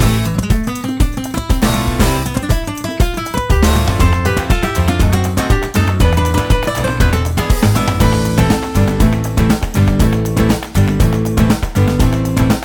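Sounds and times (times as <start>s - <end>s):
ramen background music: 0.0s - 12.6s.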